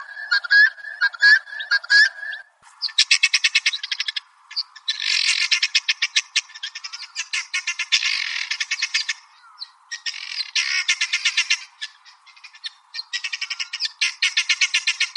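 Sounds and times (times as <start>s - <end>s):
helmeted guineafowl calling: 0.0s - 15.1s.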